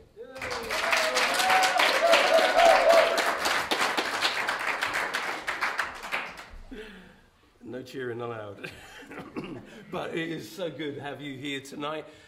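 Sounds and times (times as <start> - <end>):
crowd applause: 0.4 - 6.5
speech: 8.0 - 9.2, 9.9 - 12.2.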